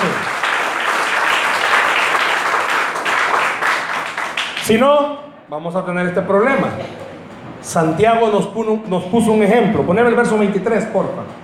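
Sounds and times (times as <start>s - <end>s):
audience applause: 0.0s - 4.8s
speech: 4.7s - 7.0s, 7.6s - 11.4s.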